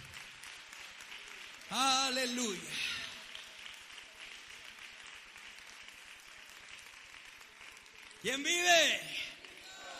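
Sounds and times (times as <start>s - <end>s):
audience applause: 0.0s - 9.9s
speech: 1.7s - 3.0s, 8.2s - 9.4s.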